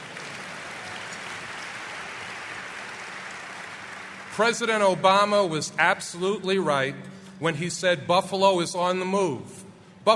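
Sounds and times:
crowd applauding: 0.0s - 5.2s
speech: 4.4s - 10.1s.

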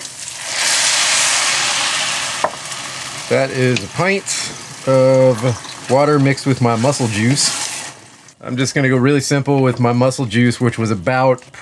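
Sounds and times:
rice sauteing in a pan: 0.0s - 8.4s
speech: 3.3s - 7.6s, 8.4s - 11.6s.

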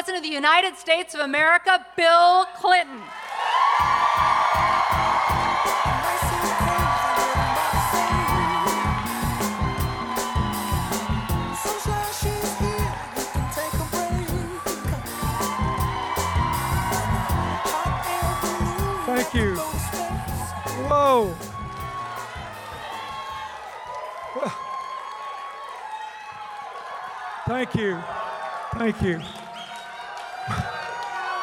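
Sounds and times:
speech: 0.1s - 4.4s, 27.5s - 29.4s
crowd at a South Dakota event cheering and whooping: 3.0s - 31.4s
continuous applause and rhythmic clapping: 3.8s - 24.2s.

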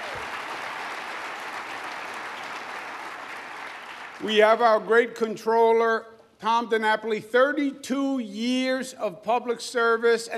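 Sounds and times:
audience round of applause: 0.0s - 4.4s
speech: 4.2s - 10.3s.

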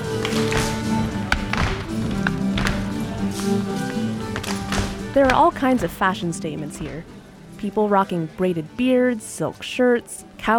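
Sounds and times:
contra dancers clapping: 0.0s - 5.9s
contra dancers stomping: 0.0s - 7.1s
speech: 5.2s - 10.5s.

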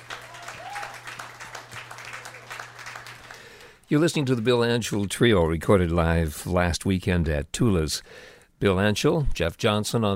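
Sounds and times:
audience applauding a live jazz trio at Tula's: 0.0s - 5.0s
speech: 3.9s - 10.1s.

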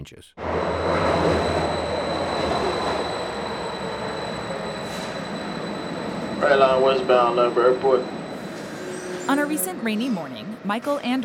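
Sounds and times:
speech: 0.0s - 1.9s, 6.4s - 8.2s, 9.3s - 11.2s
light rail train wheel squeal: 0.4s - 9.4s
light rail train rumbling past: 0.4s - 11.2s.

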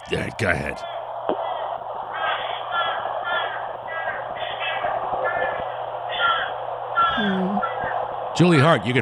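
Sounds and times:
low hum: 0.0s - 9.0s
speech: 0.1s - 1.0s, 7.2s - 7.6s, 8.4s - 9.0s
crow cawing played back over a phone line, possibly fish crow: 0.8s - 8.0s.

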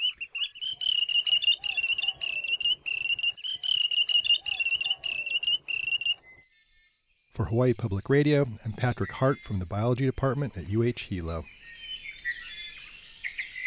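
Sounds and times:
wandering tattler alarm calls: 0.0s - 6.4s, 7.4s - 13.6s
speech: 7.4s - 11.6s.

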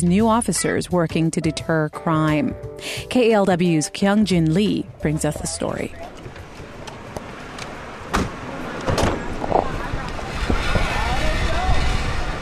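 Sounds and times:
speech: 0.0s - 6.2s
passing cars at 35th Avenue and Foothill Boulevard in East Oakland: 4.6s - 12.4s
wind buffeting: 5.9s - 12.4s
sharp knocks: 8.1s - 9.7s.

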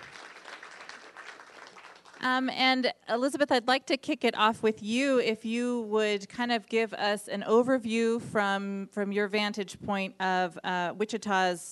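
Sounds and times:
audience applause: 0.0s - 2.2s
speech: 2.2s - 11.7s.

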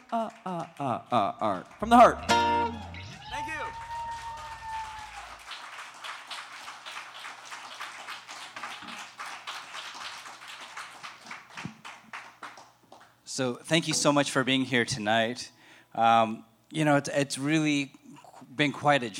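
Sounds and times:
audience clapping along in a steady rhythm: 0.0s - 13.2s
speech: 0.1s - 3.0s, 13.4s - 18.0s, 18.6s - 19.1s.

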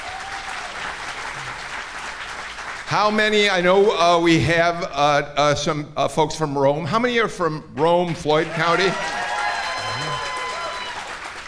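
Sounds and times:
audience applause at an evening show: 0.0s - 3.2s, 8.4s - 11.4s
speech: 2.9s - 9.2s.

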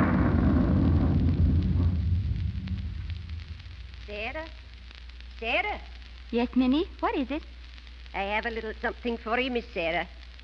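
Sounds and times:
thunder rumbling during a storm: 0.0s - 5.1s
speech: 4.2s - 4.6s, 5.4s - 7.5s, 8.1s - 10.4s.

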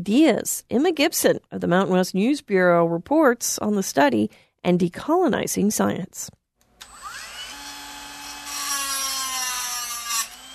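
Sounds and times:
speech: 0.0s - 6.4s
small electric saw cutting through bone sample: 6.8s - 10.5s.

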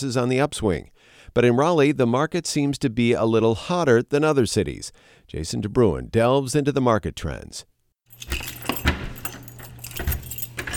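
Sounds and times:
speech: 0.0s - 8.5s
keys jingling: 8.1s - 10.7s
apartment door lock clicking and opening: 8.2s - 10.7s.

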